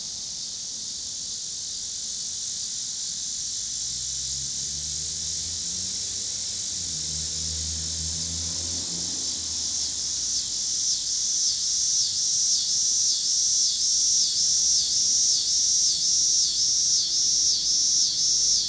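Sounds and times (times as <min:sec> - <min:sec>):
cicadas in Pittsburgh PA: 0:00.0 - 0:18.6
cars in Pittsburgh PA: 0:03.7 - 0:11.1.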